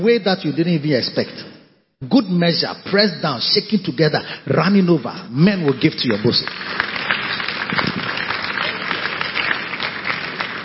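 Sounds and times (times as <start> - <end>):
speech: 0.0 - 7.0
audience clapping: 5.4 - 10.6.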